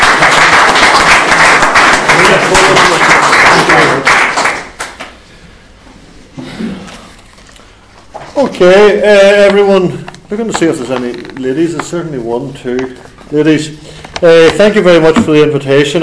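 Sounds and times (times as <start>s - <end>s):
crowd applause: 0.0s - 5.0s
speech: 8.6s - 16.0s.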